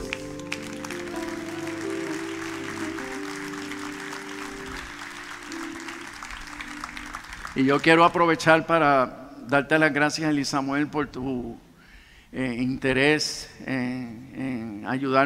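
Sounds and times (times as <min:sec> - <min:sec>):
audience applause: 0:00.0 - 0:08.4
speech: 0:07.6 - 0:11.6, 0:12.3 - 0:15.2.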